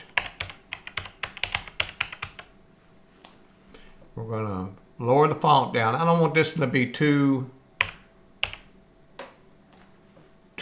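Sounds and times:
typing on a computer keyboard to enter a title in a book cover design app: 0.0s - 2.5s, 7.8s - 8.7s
speech: 4.2s - 7.6s.

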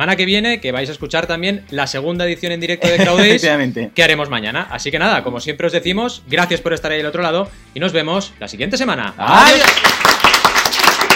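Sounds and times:
speech: 0.0s - 10.3s
laughter: 2.8s - 3.6s
audience applause: 9.5s - 11.1s.

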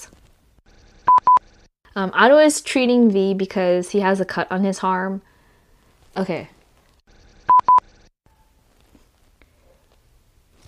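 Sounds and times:
speech: 2.0s - 5.3s, 6.2s - 6.6s
electronic doorbell ringing: 7.5s - 7.8s.

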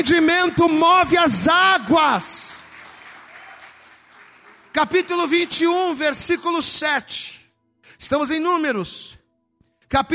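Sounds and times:
speech: 0.0s - 2.6s, 4.7s - 9.2s, 9.9s - 10.1s
crowd audience applause: 2.4s - 6.0s.

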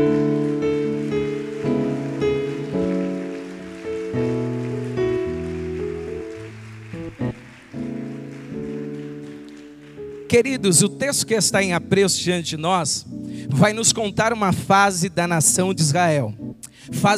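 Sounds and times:
audience applauding: 0.0s - 10.8s
speech: 10.3s - 17.1s.

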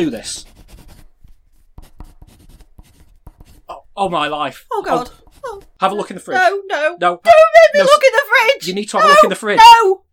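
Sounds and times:
speech: 0.0s - 0.5s, 4.0s - 10.0s
pen writing on paper: 0.5s - 1.1s, 1.8s - 3.7s, 5.0s - 5.8s.

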